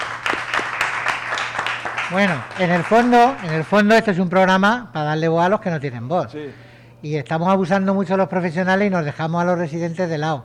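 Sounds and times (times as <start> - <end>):
audience applause: 0.0 - 4.2
speech: 2.1 - 10.4.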